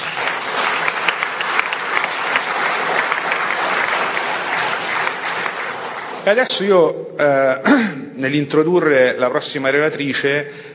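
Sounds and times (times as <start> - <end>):
audience applause: 0.0 - 6.6
speech: 6.3 - 10.7.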